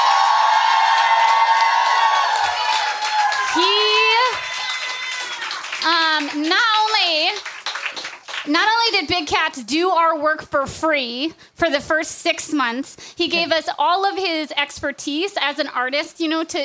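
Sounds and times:
whoops and shouts: 0.0s - 5.6s
crowd cheering and clapping: 0.0s - 8.5s
speech: 8.5s - 16.6s.

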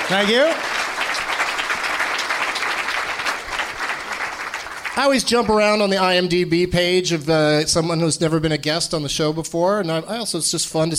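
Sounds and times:
audience applause for a guest: 0.0s - 5.8s
speech: 0.1s - 1.3s, 5.0s - 10.9s.

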